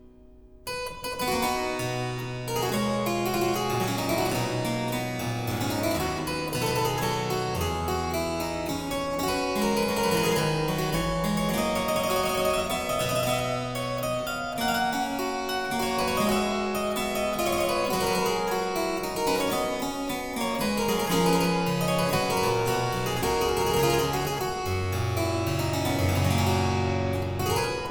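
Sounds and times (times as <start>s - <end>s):
harpsichord playing a courante: 0.7s - 27.9s.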